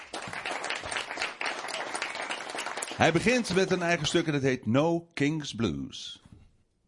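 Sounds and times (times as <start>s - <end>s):
concert audience applause for a pianist: 0.0s - 4.2s
speech: 3.0s - 6.2s.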